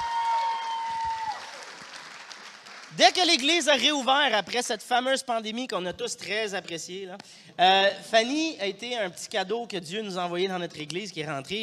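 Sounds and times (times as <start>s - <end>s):
audience applause: 0.0s - 3.0s
speech: 3.0s - 11.6s.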